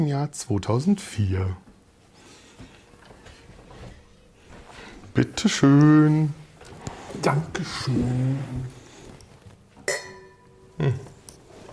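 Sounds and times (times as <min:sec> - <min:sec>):
speech: 0:00.0 - 0:01.7, 0:05.2 - 0:06.4, 0:07.2 - 0:08.8, 0:10.8 - 0:11.1
wine glasses clinking: 0:09.9 - 0:10.8.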